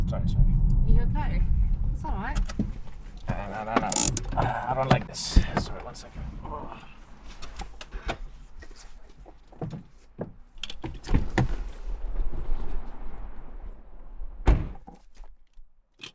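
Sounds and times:
speech: 0.1 - 7.5
car door slammed shut: 2.4 - 6.0, 14.4 - 14.9
car door opening with clicks and thunks: 2.4 - 6.6, 9.6 - 11.8, 14.4 - 15.1.

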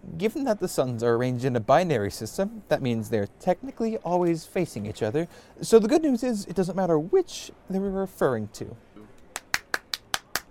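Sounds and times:
speech: 0.2 - 8.9
hand clapping: 9.2 - 10.4.

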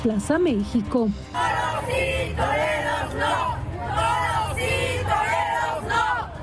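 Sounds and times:
speech: 0.0 - 4.8
large protest crowd chanting in unison outside bullring: 1.3 - 6.4.

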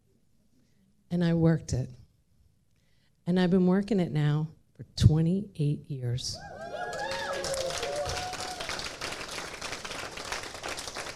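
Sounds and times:
speech: 1.1 - 2.0, 3.2 - 6.6
audience clapping: 6.4 - 11.1
cheering voices: 6.4 - 11.1.

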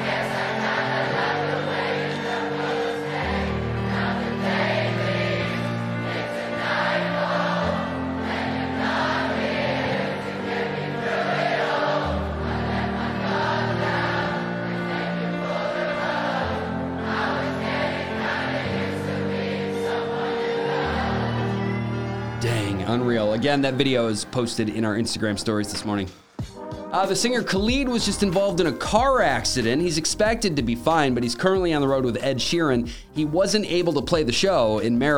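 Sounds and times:
massive concert crowd singing a song: 0.0 - 25.0
speech: 23.0 - 26.2, 26.9 - 35.1.

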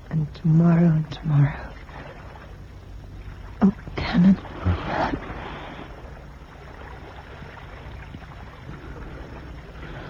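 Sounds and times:
wind-buffeted rumble of a boat on open water: 0.0 - 10.0
speech: 0.1 - 1.7, 3.6 - 5.2.

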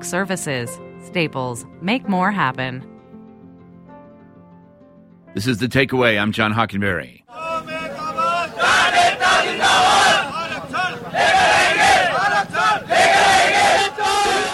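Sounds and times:
speech: 0.0 - 2.9, 5.3 - 7.7
protest crowd shouting and chanting outside Delhi: 7.3 - 14.5.

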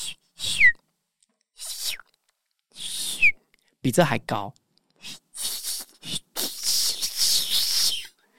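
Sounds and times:
person whistling an imitation of a swallow's call: 0.0 - 0.8, 1.6 - 2.1, 2.8 - 3.4, 5.0 - 8.2
speech: 3.8 - 4.6.

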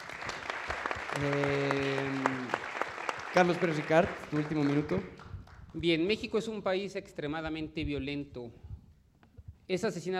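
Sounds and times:
audience applauding: 0.0 - 5.8
sharp scattered claps: 0.0 - 6.0
speech: 1.2 - 2.2, 3.4 - 5.2, 5.8 - 8.6, 9.7 - 10.1.

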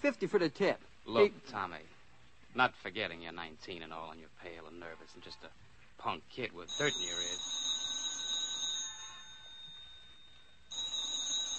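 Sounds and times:
speech: 0.0 - 1.9, 2.6 - 7.6
telephone ringing with a shrill high bell tone: 6.7 - 11.5.

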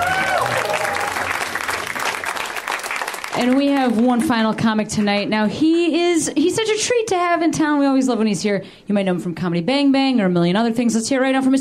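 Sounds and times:
audience applause for a comedian: 0.0 - 4.4
speech: 3.4 - 11.6.

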